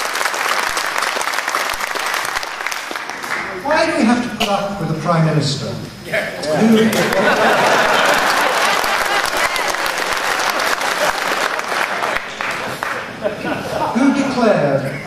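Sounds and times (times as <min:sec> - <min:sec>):
applause in parliament chamber: 0:00.0 - 0:03.6, 0:06.9 - 0:13.2
speech: 0:03.7 - 0:07.9
laughter: 0:06.4 - 0:15.0.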